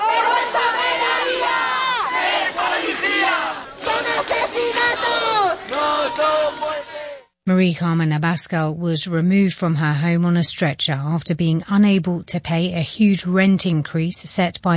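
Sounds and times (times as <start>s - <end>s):
protest crowd chanting: 0.0s - 7.3s
speech: 7.5s - 14.7s.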